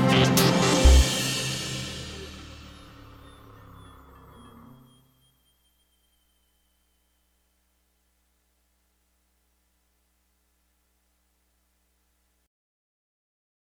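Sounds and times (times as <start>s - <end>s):
creeping horror music: 0.0s - 5.5s.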